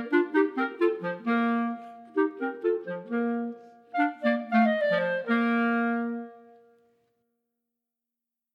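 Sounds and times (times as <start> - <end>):
clarinets playing Ecossaise chamber music, second part omitted: 0.0 - 6.7.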